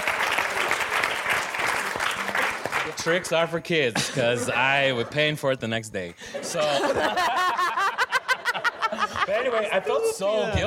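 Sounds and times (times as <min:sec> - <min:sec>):
comedy show audience applauding: 0:00.0 - 0:03.6
speech: 0:02.9 - 0:07.7, 0:09.3 - 0:10.6
laughter: 0:03.8 - 0:10.6.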